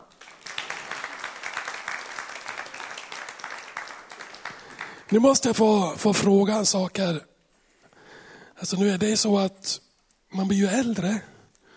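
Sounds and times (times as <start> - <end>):
audience applause: 0.0 - 5.4
speech: 5.1 - 7.3, 8.6 - 9.8, 10.4 - 11.3.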